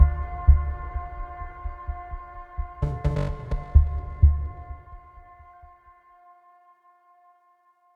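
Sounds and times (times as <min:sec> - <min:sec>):
epic city fight music: 0:02.8 - 0:04.9.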